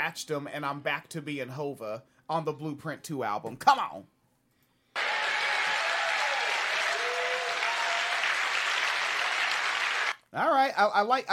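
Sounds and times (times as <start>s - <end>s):
speech: 0.1s - 4.2s, 10.3s - 11.3s
audience clapping: 5.0s - 10.2s.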